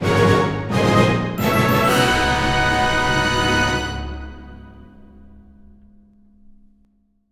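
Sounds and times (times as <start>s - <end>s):
new costume jingle: 0.0s - 5.4s.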